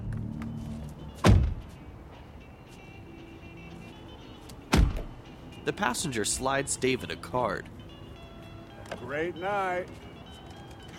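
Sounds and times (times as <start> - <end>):
black sedan car doors closing at a gas station: 1.2 - 1.7, 4.7 - 5.1
speech: 5.6 - 7.8, 9.1 - 10.0.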